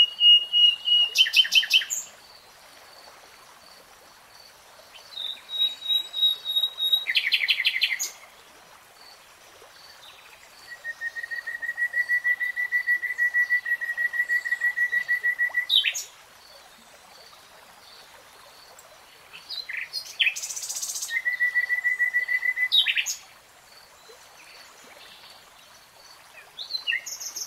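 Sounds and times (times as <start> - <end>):
nightingale song: 0.0 - 2.2, 4.9 - 8.3, 9.9 - 17.3, 18.7 - 23.3, 26.2 - 27.4.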